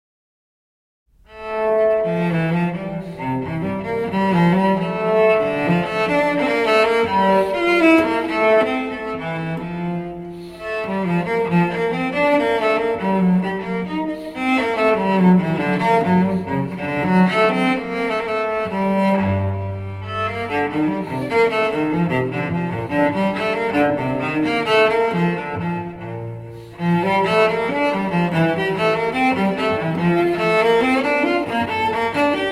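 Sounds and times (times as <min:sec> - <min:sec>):
andante sonata for solo cello in F major: 0:01.1 - 0:32.4.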